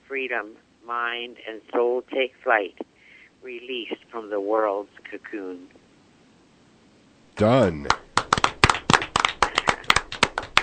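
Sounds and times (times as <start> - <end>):
speech: 0.1 - 5.8, 7.4 - 8.0
scattered applause from a small open mic poetry audience: 7.4 - 10.6.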